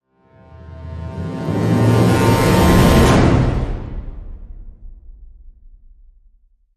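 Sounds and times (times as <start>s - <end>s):
orchestral brass hit in C: 0.3s - 5.2s.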